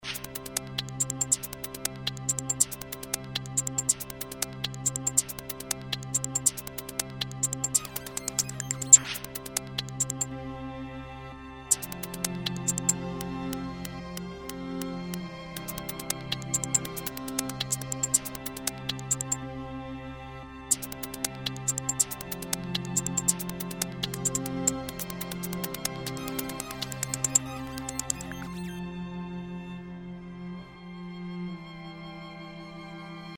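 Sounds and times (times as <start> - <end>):
instrumental music: 0.0 - 33.3.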